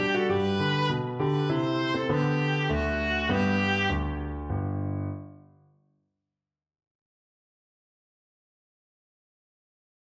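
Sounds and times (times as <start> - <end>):
viola playing a minuet: 0.0 - 4.4.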